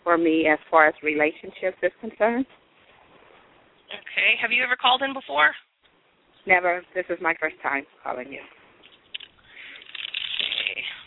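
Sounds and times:
speech: 0.2 - 2.6, 3.9 - 5.7, 6.4 - 8.6
playing cards shuffled for a reading: 8.9 - 11.0.

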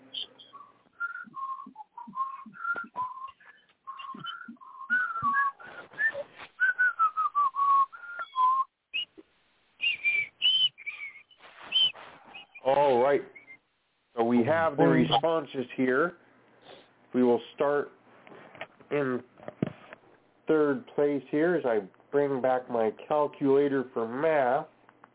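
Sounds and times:
person whistling a tune: 0.1 - 9.1, 9.8 - 12.6
speech: 14.5 - 16.2, 17.1 - 18.0, 18.9 - 19.3, 20.5 - 24.7.

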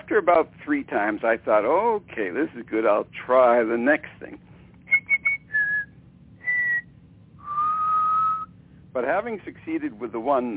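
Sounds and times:
speech: 0.1 - 4.5, 9.0 - 10.5
whistled imitation of an oriole's song: 4.9 - 8.6.

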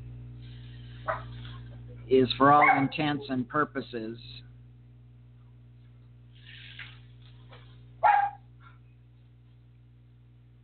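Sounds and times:
low steady hum: 0.0 - 10.6
dog barking outside: 1.1 - 1.4, 2.6 - 2.9, 8.0 - 8.4
speech: 2.1 - 4.5
dog yelping outside: 2.6 - 2.9, 8.0 - 8.4.

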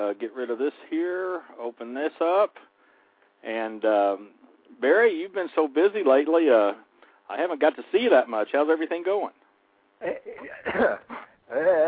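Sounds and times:
speech: 0.0 - 2.7, 3.4 - 9.4, 10.0 - 11.8
person clearing a knotted throat: 10.0 - 11.4.

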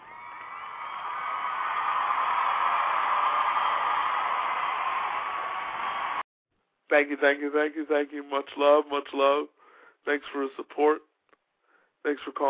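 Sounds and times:
crowd applause and cheering: 0.0 - 6.2
speech: 6.9 - 11.1, 12.0 - 12.4.

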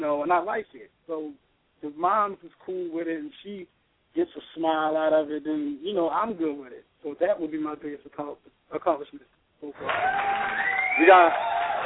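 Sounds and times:
speech: 0.0 - 11.6
applause sound effect: 9.8 - 11.8.

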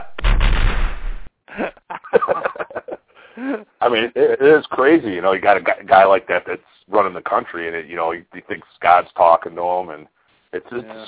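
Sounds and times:
gunfire from a firing squad volley: 0.0 - 1.3
short broken sounds: 0.0 - 1.3
laughter: 1.5 - 3.7
speech: 3.8 - 11.0.

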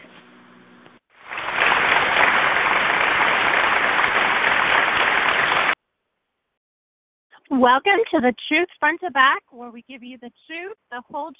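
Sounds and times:
crowd applause: 1.2 - 5.8
speech: 7.6 - 11.3.

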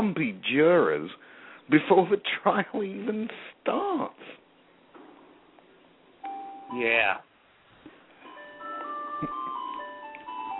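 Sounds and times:
faint hum: 0.0 - 10.5
speech: 0.1 - 4.4, 6.7 - 7.3
tinny ice cream truck jingle: 8.2 - 10.5.

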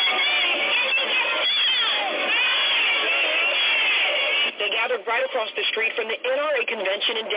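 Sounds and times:
crowd of protesters cheering and shouting: 0.0 - 4.6
speech: 5.2 - 7.3.

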